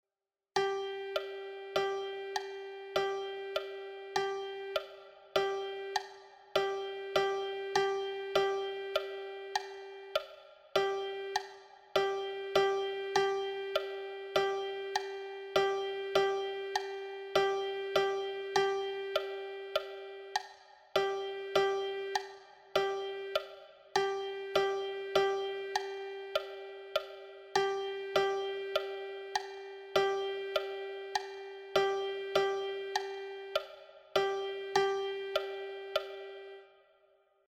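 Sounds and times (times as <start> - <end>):
percussion: 0.6 - 36.3.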